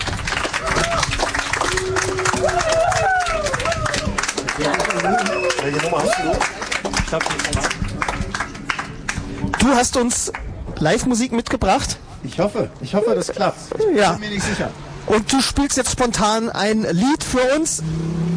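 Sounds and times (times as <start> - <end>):
audience applause: 0.0 - 9.8
speech: 5.7 - 7.9, 9.6 - 18.2.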